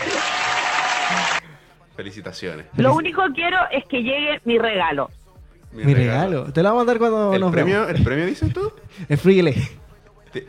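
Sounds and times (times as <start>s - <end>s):
applause: 0.0s - 1.4s
speech: 2.0s - 10.4s
laughter: 7.4s - 9.8s.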